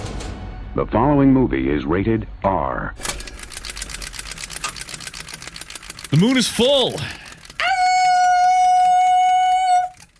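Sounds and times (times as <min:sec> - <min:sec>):
speech: 0:00.8 - 0:03.1, 0:06.1 - 0:07.2
person imitating wolf howl: 0:07.6 - 0:10.0.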